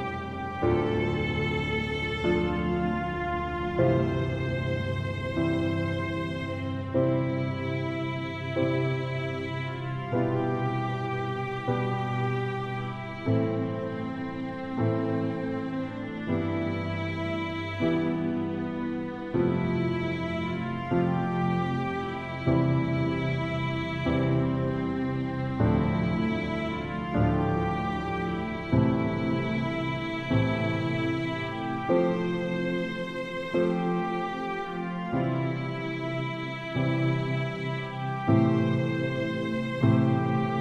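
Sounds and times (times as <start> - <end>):
piano playing funeral music: 0.0 - 40.5
viola playing funeral music: 0.0 - 40.5.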